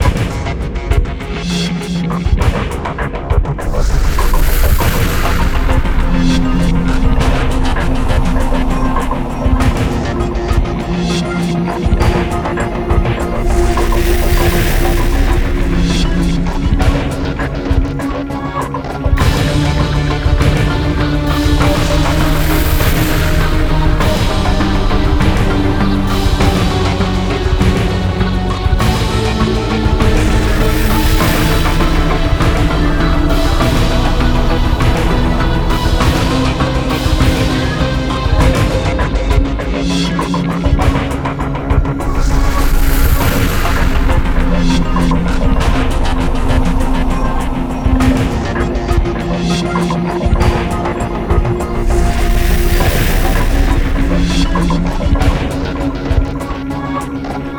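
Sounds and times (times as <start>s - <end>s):
music: 0.0s - 57.5s.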